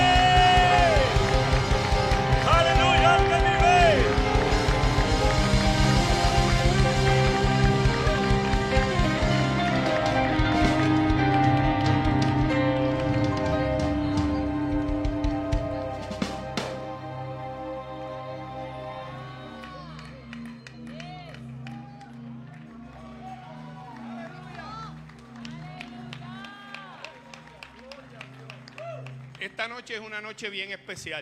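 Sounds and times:
pulsing music with sung notes: 0.0 - 20.5
audience applauding: 0.0 - 30.4
speech: 29.8 - 31.1.

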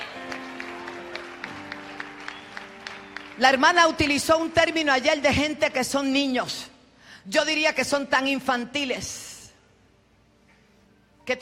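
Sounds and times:
audience clapping rhythmically: 0.0 - 3.8
speech: 3.4 - 9.2, 11.3 - 11.4.

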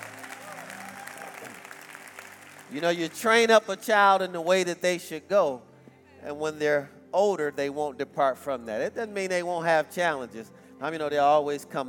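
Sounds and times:
audience applause: 0.0 - 3.4
speech: 2.7 - 11.8.

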